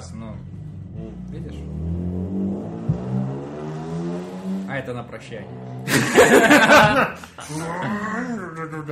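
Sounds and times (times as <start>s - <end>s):
car engine revving as it drives away: 0.0s - 7.0s
speech: 1.3s - 1.9s, 4.8s - 8.9s
laughter: 5.9s - 8.4s.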